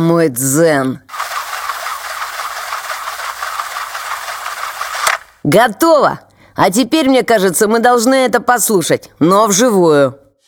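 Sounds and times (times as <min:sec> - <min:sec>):
speech: 0:00.0 - 0:01.2, 0:05.5 - 0:10.2
winding cassette tape with a pencil: 0:01.1 - 0:05.4.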